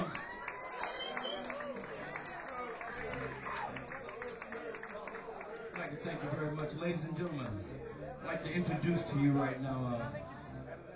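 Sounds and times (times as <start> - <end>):
audience applause: 0.0 - 6.3
crowd voices: 0.0 - 10.9
speech: 6.2 - 10.2.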